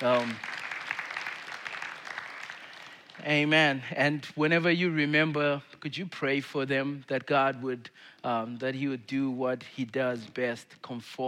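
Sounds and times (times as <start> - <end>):
speech: 0.0 - 0.5, 3.2 - 11.2
audience clapping: 0.0 - 3.5.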